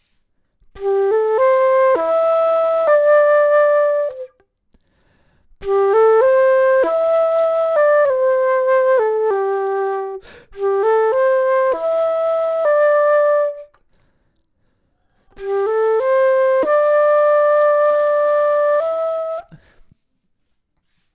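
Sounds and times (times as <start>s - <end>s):
flute: 0.7s - 4.5s, 5.6s - 13.8s, 15.3s - 19.9s.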